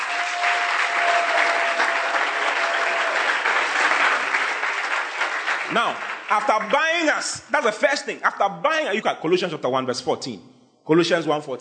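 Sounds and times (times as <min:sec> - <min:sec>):
audience applause: 0:00.0 - 0:07.4
speech: 0:05.7 - 0:11.5.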